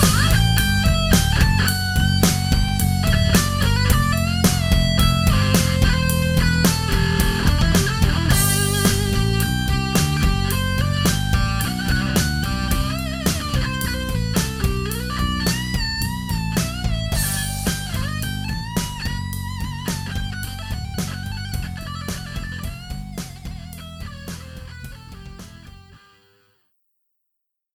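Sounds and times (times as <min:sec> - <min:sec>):
guitar melody: 0:00.0 - 0:26.4.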